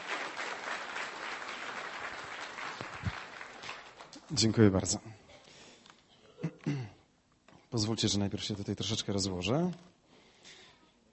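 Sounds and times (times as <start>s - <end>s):
audience applause: 0.0s - 4.2s
speech: 4.3s - 5.1s, 7.8s - 10.0s.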